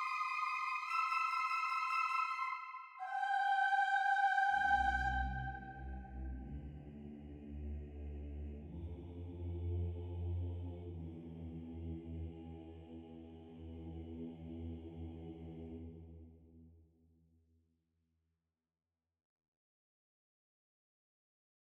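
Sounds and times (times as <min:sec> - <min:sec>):
choir singing: 0:00.0 - 0:16.1.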